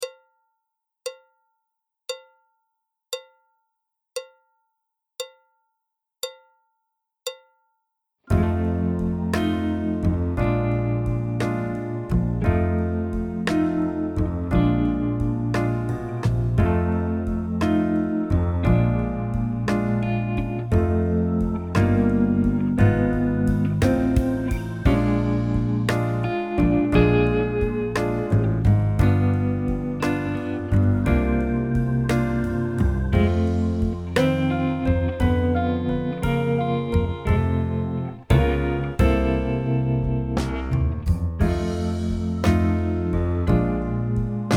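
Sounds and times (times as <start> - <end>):
jazz backing track: 8.3 - 44.5.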